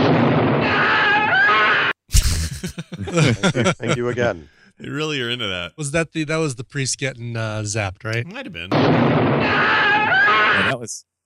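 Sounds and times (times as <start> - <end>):
terrible scream: 0.6 - 2.0, 9.4 - 10.7
laughter: 2.1 - 4.4
speech: 3.1 - 11.2.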